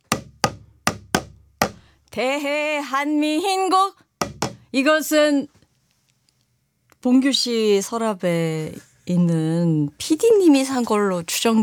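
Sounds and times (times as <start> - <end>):
sogo small Korean hand drum being struck: 0.0 - 1.9, 4.2 - 4.7
speech: 2.2 - 4.0, 4.7 - 5.6, 7.0 - 11.6.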